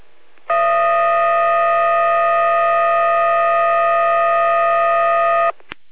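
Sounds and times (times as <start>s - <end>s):
fire brigade dispatch alarm tones: 0.5s - 5.6s.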